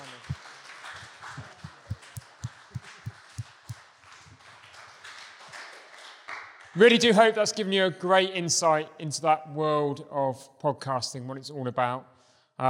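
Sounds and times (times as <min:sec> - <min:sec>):
audience round of applause: 0:00.0 - 0:06.6
speech: 0:06.8 - 0:12.6.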